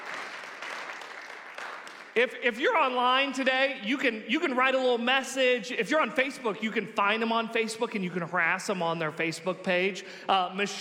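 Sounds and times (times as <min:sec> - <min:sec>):
audience applause: 0:00.0 - 0:02.2
speech: 0:02.2 - 0:10.7.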